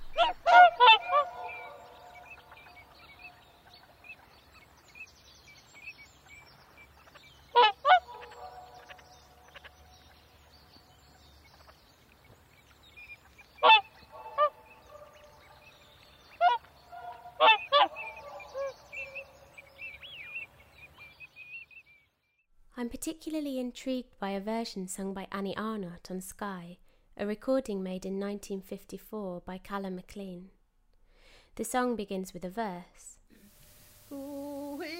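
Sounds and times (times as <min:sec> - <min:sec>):
swans calling: 0:00.0 - 0:04.7, 0:05.7 - 0:10.4, 0:11.1 - 0:21.7
speech: 0:22.8 - 0:30.6, 0:31.6 - 0:33.2.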